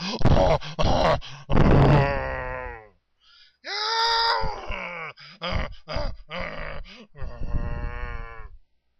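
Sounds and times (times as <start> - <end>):
person imitating a monkey grunting: 0.1 - 2.9, 4.7 - 8.6.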